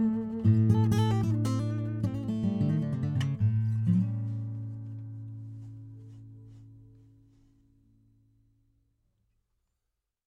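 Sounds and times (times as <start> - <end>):
acoustic guitar performance: 0.0 - 8.2.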